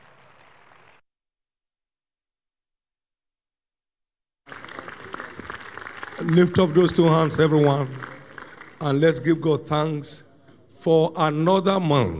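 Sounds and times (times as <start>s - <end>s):
audience clapping: 0.0s - 1.0s, 4.5s - 9.4s
speech: 6.2s - 8.1s, 8.8s - 10.2s, 10.8s - 12.1s.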